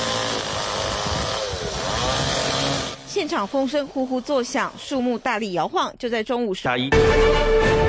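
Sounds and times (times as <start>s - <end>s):
chainsaw cutting through a fallen tree: 0.0s - 4.5s
speech: 3.2s - 7.8s.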